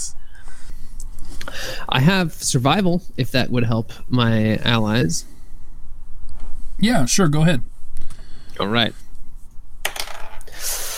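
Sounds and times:
speech: 2.0 - 5.3, 6.8 - 7.7, 8.6 - 9.0
dice rattling on a surface: 9.8 - 10.5.

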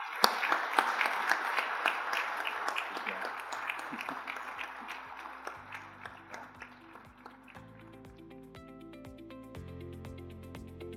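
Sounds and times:
audience applause for panelists: 0.0 - 8.1.

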